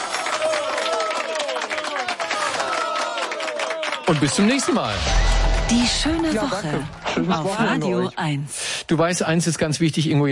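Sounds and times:
applause: 0.0s - 5.0s
speech: 4.1s - 10.3s.

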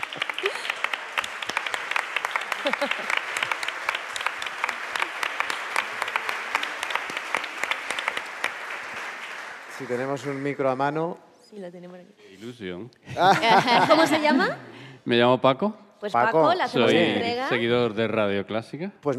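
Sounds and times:
audience applause: 0.0s - 11.0s
laughter: 2.4s - 3.7s, 13.1s - 14.7s
speech: 2.6s - 3.2s, 9.8s - 19.1s.

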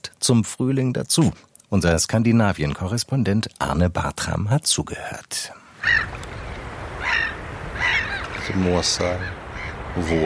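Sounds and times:
speech: 0.2s - 5.6s, 8.5s - 9.4s, 10.0s - 10.2s
gulls calling over waves: 5.8s - 10.2s
waves: 5.8s - 10.2s.

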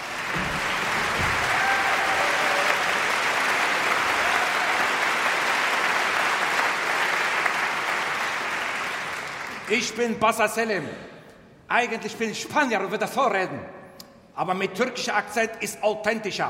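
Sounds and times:
audience applause: 0.0s - 9.7s
speech: 9.7s - 11.1s, 11.7s - 13.8s, 14.4s - 16.4s.

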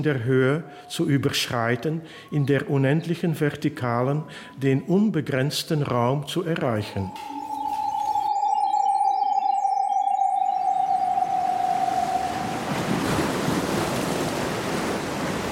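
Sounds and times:
speech: 0.0s - 7.4s
faint chirps: 6.5s - 13.6s
sustained tone: 6.5s - 14.3s
sea waves washing up on the shore: 9.2s - 15.5s.

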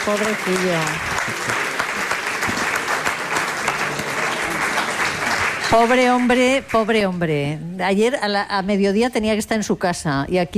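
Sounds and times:
speech: 0.0s - 1.6s, 5.7s - 10.5s
audience applause: 0.0s - 6.8s.

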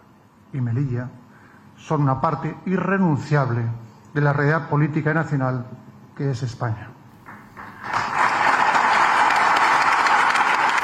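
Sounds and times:
speech: 0.5s - 1.2s, 1.8s - 7.0s
audience ovation: 7.2s - 10.8s.

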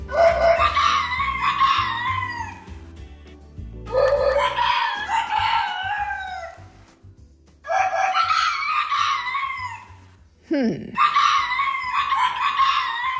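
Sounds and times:
tame home-bred rooster crowing: 0.1s - 2.7s, 3.9s - 6.7s, 7.7s - 10.0s, 11.0s - 13.1s.

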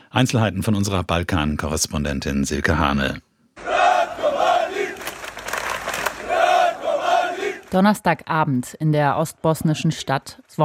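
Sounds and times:
speech: 0.1s - 3.3s, 7.7s - 10.6s
crowd of demonstrators chanting in the street: 3.6s - 7.8s.

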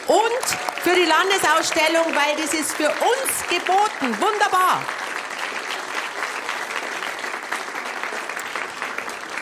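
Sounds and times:
audience applause: 0.0s - 9.4s
speech: 0.1s - 5.0s.

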